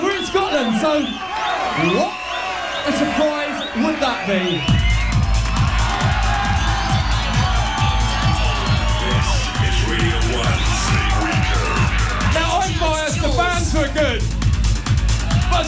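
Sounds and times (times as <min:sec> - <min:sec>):
large crowd screaming and cheering: 0:00.0 - 0:15.6
speech: 0:00.6 - 0:02.2, 0:02.8 - 0:04.9
loud music with steady pounding low beat: 0:04.6 - 0:15.6.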